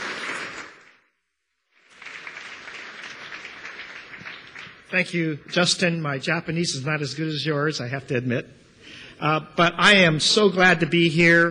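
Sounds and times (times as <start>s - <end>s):
audience applause: 0.0s - 1.0s, 1.8s - 5.1s
speech: 4.9s - 8.6s, 9.2s - 11.4s.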